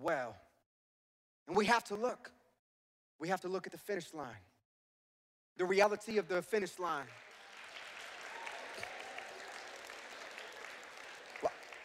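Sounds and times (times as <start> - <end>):
speech: 0.0 - 0.4, 1.5 - 2.4, 3.2 - 4.5, 5.6 - 7.3
thin scattered audience applause: 6.7 - 11.8.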